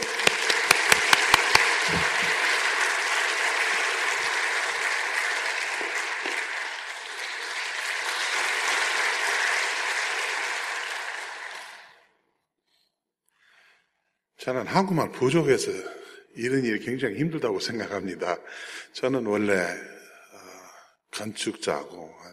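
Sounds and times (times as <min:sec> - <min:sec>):
audience applause welcoming a speaker: 0:00.0 - 0:12.1
speech: 0:14.5 - 0:20.0, 0:21.2 - 0:22.3.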